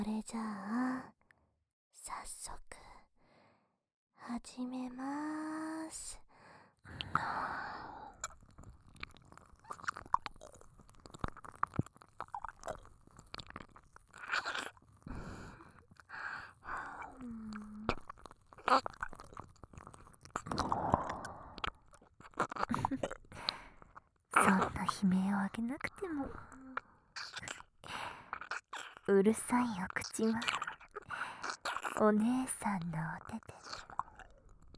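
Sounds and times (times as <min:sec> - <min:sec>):
speech: 0:00.1 - 0:01.2, 0:02.0 - 0:03.1, 0:04.2 - 0:07.9, 0:18.7 - 0:19.0, 0:24.4 - 0:26.6, 0:29.1 - 0:30.6, 0:32.0 - 0:33.6
ASMR ear licking mouth sounds: 0:06.9 - 0:34.7.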